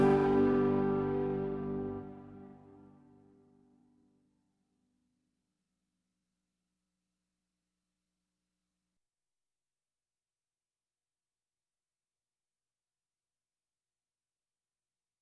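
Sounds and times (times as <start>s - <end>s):
slow melody: 0.0s - 3.5s.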